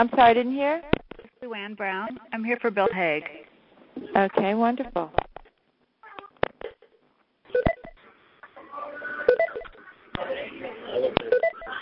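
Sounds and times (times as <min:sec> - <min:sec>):
speech: 0:00.0 - 0:05.2
conference call join beeps: 0:02.2 - 0:03.3, 0:07.5 - 0:08.0, 0:08.9 - 0:09.8, 0:10.9 - 0:11.8.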